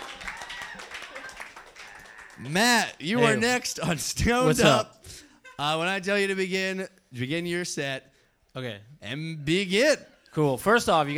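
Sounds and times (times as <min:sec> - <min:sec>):
audience clapping: 0:00.0 - 0:03.7
laughter: 0:00.0 - 0:06.6
speech: 0:02.4 - 0:05.0, 0:05.6 - 0:11.1.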